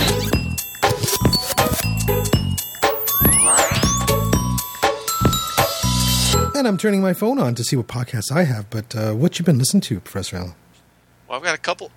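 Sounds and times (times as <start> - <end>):
podcast segment jingle: 0.1 - 7.7
speech: 6.6 - 10.7, 11.3 - 11.9.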